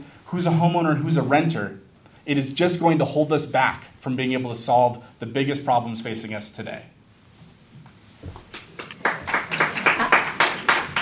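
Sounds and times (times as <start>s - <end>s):
speech: 0.3s - 7.0s
audience applause: 8.6s - 10.9s.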